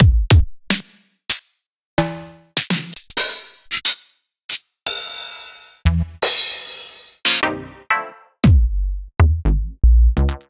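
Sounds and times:
drum: 0.0s - 1.4s, 2.0s - 7.5s, 8.4s - 9.5s.

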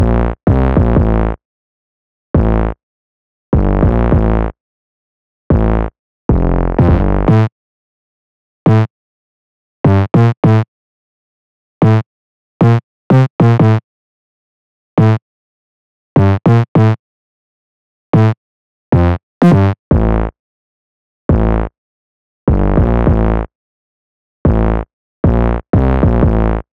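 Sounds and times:
silly isolated bass line: 0.0s - 1.4s, 2.4s - 2.8s, 3.6s - 4.6s, 5.5s - 7.5s, 8.7s - 8.9s, 9.9s - 10.6s, 11.8s - 12.0s, 12.6s - 13.8s, 15.0s - 15.2s, 16.2s - 17.0s, 18.2s - 18.4s, 19.0s - 20.3s, 21.3s - 21.7s, 22.5s - 23.5s, 24.5s - 26.7s.

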